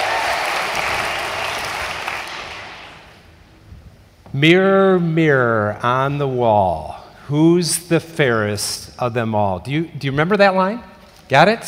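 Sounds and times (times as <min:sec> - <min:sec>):
audience applause: 0:00.0 - 0:03.1
speech: 0:04.3 - 0:11.6.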